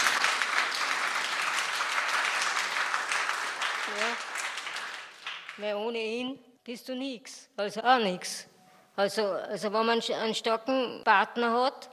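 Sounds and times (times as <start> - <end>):
audience applause: 0.0 - 5.6
speech: 3.9 - 4.3, 5.6 - 11.9.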